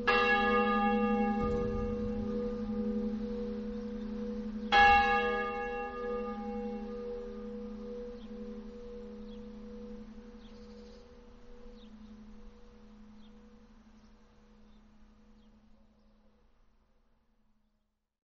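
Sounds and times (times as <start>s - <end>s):
church bells of San Lorenzo ringing: 0.0s - 10.3s.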